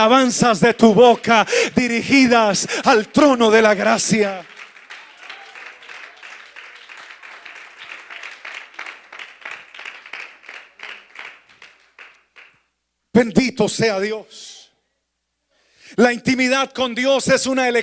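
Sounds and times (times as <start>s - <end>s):
speech: 0.0s - 4.5s, 13.2s - 14.5s, 16.0s - 17.8s
applause: 0.0s - 12.7s.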